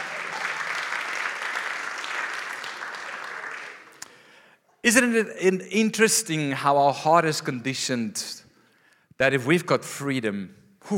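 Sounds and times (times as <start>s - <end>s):
audience cheering and applause: 0.0s - 4.2s
speech: 4.8s - 8.4s, 9.2s - 10.9s.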